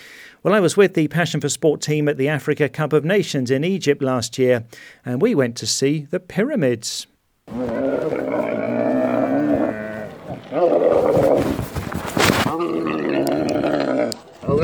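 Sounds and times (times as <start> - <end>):
speech: 0.4 - 9.3
camel grunting while carrying a rider through the desert near the pyramids in Egypt: 7.5 - 14.6.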